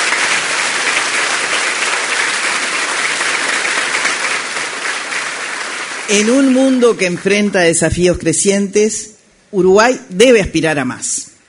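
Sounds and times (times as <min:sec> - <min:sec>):
applause: 0:00.0 - 0:08.2
speech: 0:06.1 - 0:11.3.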